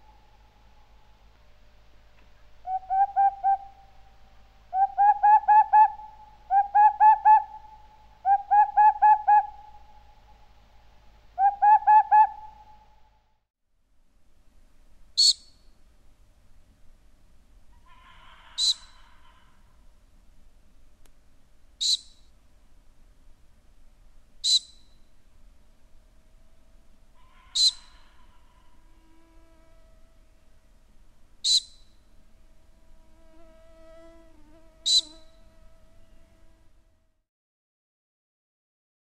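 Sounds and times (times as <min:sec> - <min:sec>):
boreal owl dry snapping call: 0:02.6 - 0:10.4, 0:11.4 - 0:13.0, 0:17.7 - 0:19.8, 0:21.8 - 0:22.2, 0:24.4 - 0:24.9, 0:27.1 - 0:29.2, 0:31.4 - 0:31.9, 0:34.8 - 0:35.4.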